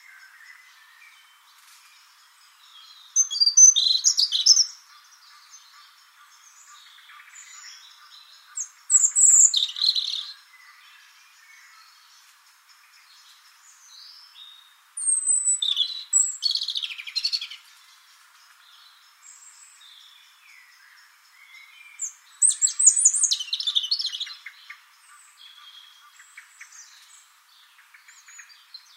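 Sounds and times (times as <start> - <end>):
European robin warbling song: 2.8 - 10.8, 14.1 - 17.7, 21.6 - 27.1.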